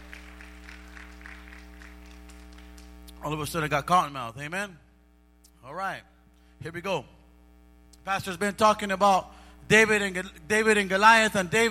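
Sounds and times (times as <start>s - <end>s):
audience clapping: 0.0s - 3.2s
speech: 3.2s - 4.8s, 5.6s - 7.2s, 8.0s - 11.6s.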